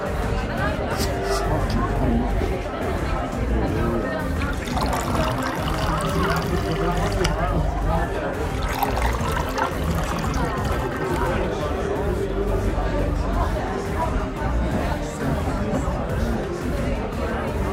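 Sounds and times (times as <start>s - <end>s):
overlapping voices murmuring in a bar: 0.0s - 17.7s.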